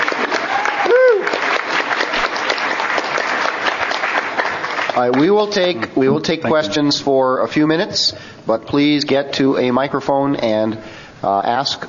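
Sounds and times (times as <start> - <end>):
audience round of applause: 0.0 - 5.5
speech: 5.0 - 11.8.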